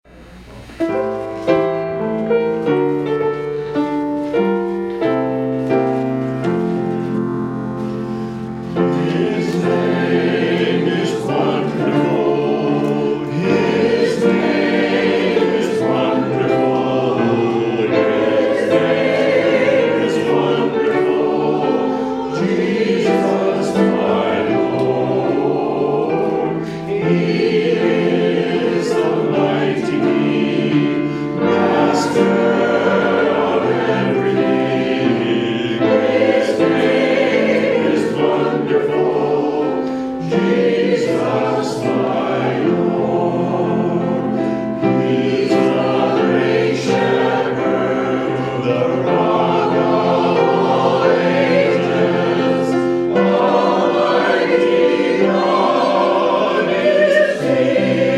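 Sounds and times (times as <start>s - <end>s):
hymn: 0.8s - 58.1s.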